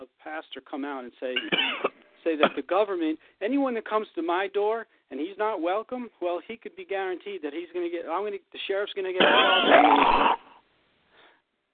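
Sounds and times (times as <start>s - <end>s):
speech: 0.3s - 10.5s
person coughing into an open microphone: 1.4s - 2.6s, 9.2s - 10.5s.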